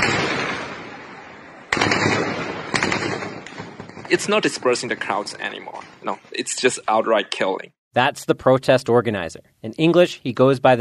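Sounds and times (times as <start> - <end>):
automatic rifle gunfire: 0.0 - 4.2
speech: 4.1 - 10.7.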